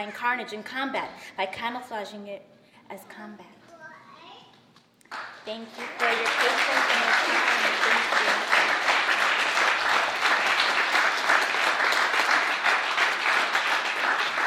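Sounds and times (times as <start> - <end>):
speech: 0.0 - 3.6, 5.4 - 8.8
audience applause: 5.1 - 14.4.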